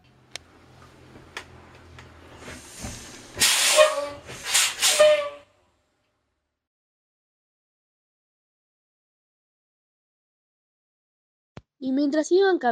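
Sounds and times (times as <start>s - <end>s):
bus engine rumble as bus pulls in: 0.0s - 5.0s
bus air-brake hiss with high squeals: 2.4s - 5.3s
speech: 11.8s - 12.7s.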